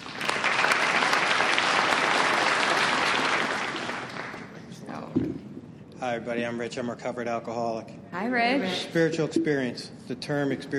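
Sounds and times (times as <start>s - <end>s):
audience applause welcoming a speaker at a twelve-step recovery meeting: 0.0s - 4.6s
speech: 6.0s - 10.7s.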